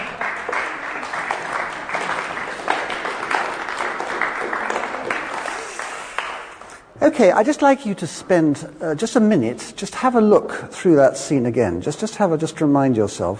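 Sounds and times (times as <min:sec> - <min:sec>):
audience applause: 0:00.0 - 0:06.8
speech: 0:07.1 - 0:13.3.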